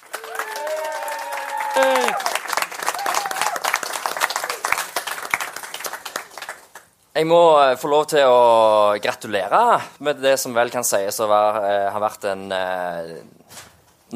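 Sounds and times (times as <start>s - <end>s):
audience applause: 0.0s - 6.9s
speech: 1.8s - 2.4s, 7.2s - 14.1s.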